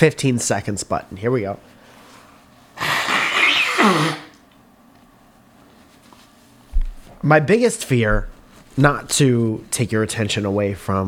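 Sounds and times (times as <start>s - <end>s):
speech: 0.0s - 1.8s, 3.8s - 4.2s, 7.2s - 11.0s
person blowing nose: 2.8s - 4.4s.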